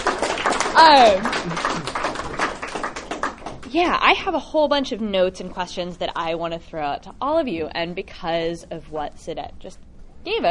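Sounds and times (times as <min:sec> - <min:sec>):
audience clapping: 0:00.0 - 0:03.8
speech: 0:00.8 - 0:02.0, 0:03.7 - 0:10.5.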